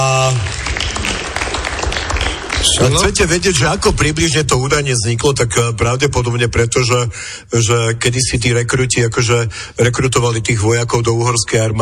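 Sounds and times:
quiz show studio audience applause: 0.0 - 4.5
speech: 2.7 - 11.8.

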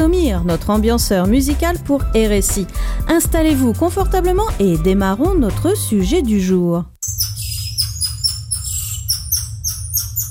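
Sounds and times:
speech: 0.4 - 6.9
golden lion tamarin shrill whistling call: 7.0 - 10.2.

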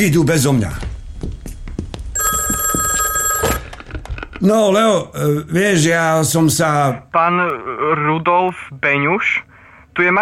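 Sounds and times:
speech: 0.0 - 0.8, 4.4 - 10.2
telephone ringing: 2.2 - 4.0.

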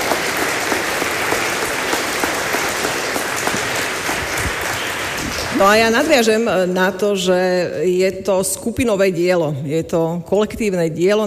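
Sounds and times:
audience applause: 0.0 - 6.1
speech: 5.6 - 11.2.

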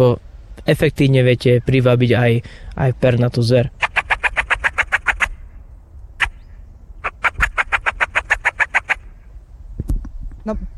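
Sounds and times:
speech: 0.0 - 3.8, 10.4 - 10.6
Eurasian magpie rattling chatter: 3.7 - 5.4, 7.0 - 9.2.

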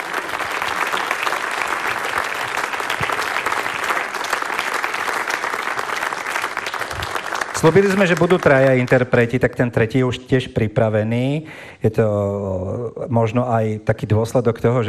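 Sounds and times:
audience applause: 0.0 - 9.3
speech: 7.6 - 14.8.

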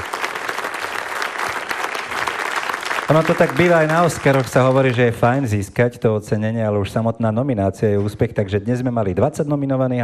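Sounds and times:
audience applause: 0.0 - 5.4
speech: 3.1 - 10.0.

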